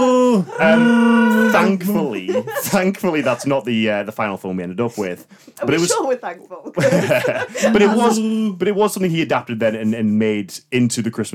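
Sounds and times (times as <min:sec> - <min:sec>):
Wookiee screaming: 0:00.0 - 0:01.9
laughter: 0:00.5 - 0:03.8, 0:06.8 - 0:08.4
speech: 0:00.6 - 0:11.3.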